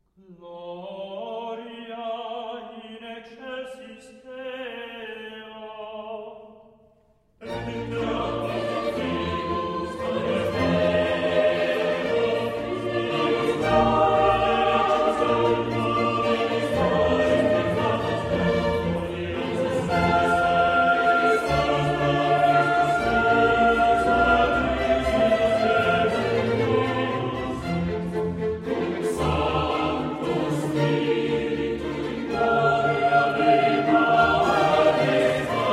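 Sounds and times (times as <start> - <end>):
fast classical piece: 7.4 - 35.7.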